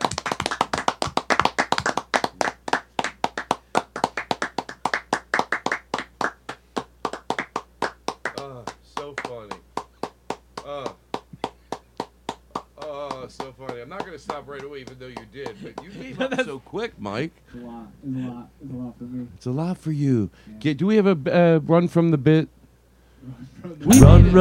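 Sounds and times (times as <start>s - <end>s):
two people clapping after a show: 0.0s - 16.0s
speech: 13.8s - 22.6s, 23.8s - 24.3s.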